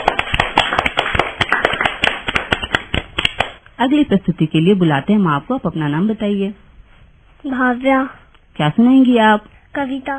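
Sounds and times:
children applauding: 0.0 - 3.4
speech: 3.8 - 6.6, 7.4 - 10.1.

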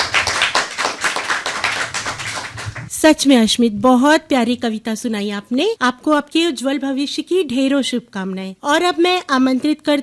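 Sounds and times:
children applauding: 0.0 - 2.9
speech: 3.0 - 10.0.

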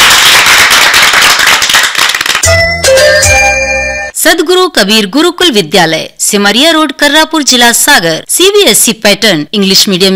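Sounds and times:
children applauding: 0.0 - 2.6
bright musical jingle: 2.4 - 4.1
speech: 4.7 - 10.1.

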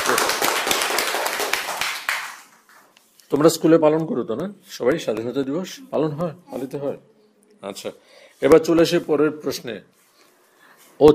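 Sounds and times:
schoolchildren clapping for a correct quiz answer at an Independence Day event: 0.0 - 2.9
speech: 3.3 - 10.0.

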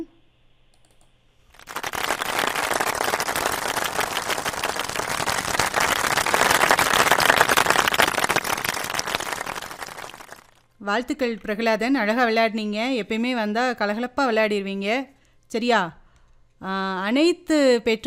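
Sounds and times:
group applauding: 1.5 - 10.6
speech: 10.9 - 16.0, 16.6 - 18.0.

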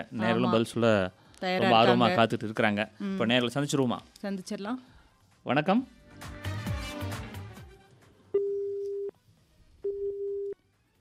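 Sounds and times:
speech: 0.0 - 6.5
telephone busy tone after caller disconnected: 8.4 - 9.1, 9.8 - 10.6.

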